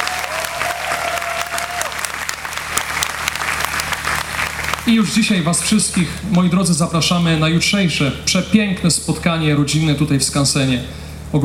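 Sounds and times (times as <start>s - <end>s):
audience applause at a diocesan gathering at an open-air skansen museum in Poland: 0.0s - 5.1s
speech: 4.8s - 11.4s.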